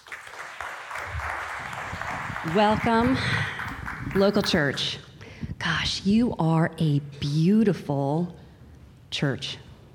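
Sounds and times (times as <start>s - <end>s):
church congregation applauding to welcome a speaker: 0.0s - 4.8s
speech: 2.4s - 5.0s, 5.6s - 8.4s, 9.1s - 9.6s.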